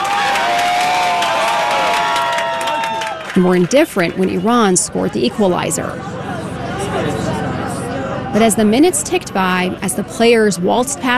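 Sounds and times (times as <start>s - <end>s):
anti-regime activists crowded around a TV cheering a goal: 0.0s - 11.1s
speech: 3.4s - 6.3s, 8.4s - 11.1s.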